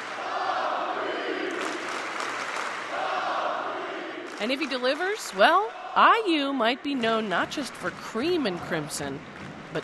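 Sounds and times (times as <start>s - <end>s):
crowd chanting a name: 0.1s - 1.9s, 2.8s - 4.4s
speech: 4.4s - 9.8s.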